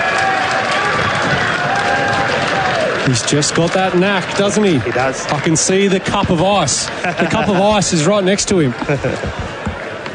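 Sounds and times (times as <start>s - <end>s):
cricket crowd cheering: 0.0s - 10.1s
speech: 3.1s - 9.5s.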